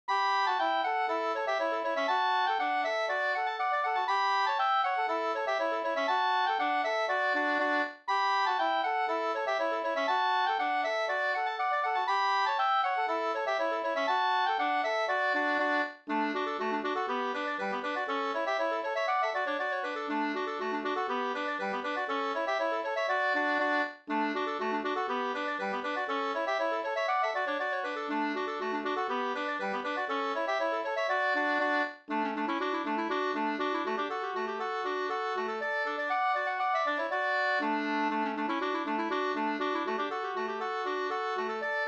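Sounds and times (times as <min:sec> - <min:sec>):
folk dance music: 0:00.1 - 0:41.8.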